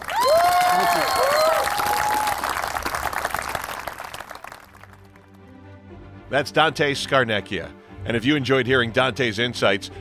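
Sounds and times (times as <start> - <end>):
crowd applauding and cheering: 0.0 - 5.5
speech: 6.3 - 9.9.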